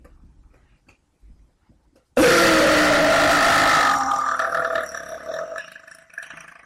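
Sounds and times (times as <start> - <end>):
person burping: 2.2 - 6.6.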